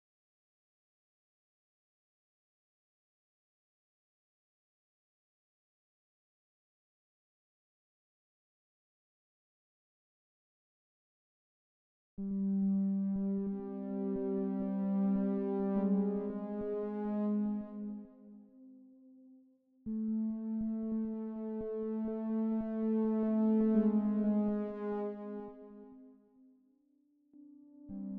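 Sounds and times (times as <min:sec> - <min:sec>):
synths and pads: 0:12.2 - 0:18.8, 0:19.9 - 0:26.1, 0:27.3 - 0:28.1.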